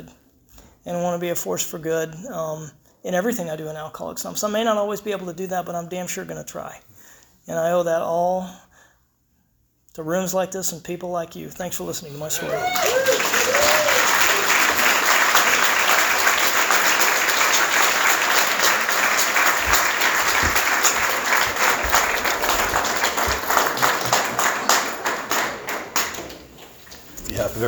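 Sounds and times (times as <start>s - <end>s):
speech: 0.8s - 6.9s, 7.5s - 8.6s, 10.0s - 13.2s
applause: 12.4s - 26.7s.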